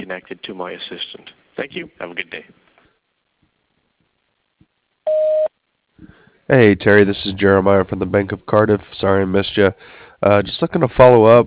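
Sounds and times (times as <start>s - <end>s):
speech: 0.1s - 2.7s, 5.1s - 11.4s
voicemail beep tone: 5.1s - 5.5s.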